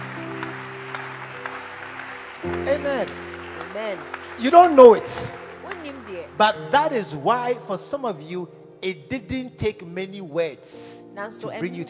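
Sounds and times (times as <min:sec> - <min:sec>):
audience applause: 0:00.0 - 0:07.1
speech: 0:02.4 - 0:03.2, 0:03.8 - 0:05.4, 0:06.1 - 0:11.8.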